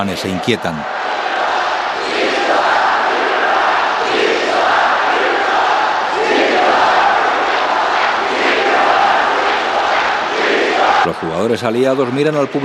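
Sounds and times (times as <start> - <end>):
speech: 0.0 - 1.0, 11.0 - 12.6
French crowd shouting for victory at a football match: 0.0 - 12.6.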